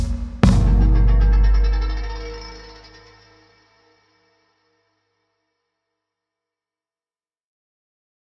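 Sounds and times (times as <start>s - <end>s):
trailer soundtrack music: 0.0s - 3.0s.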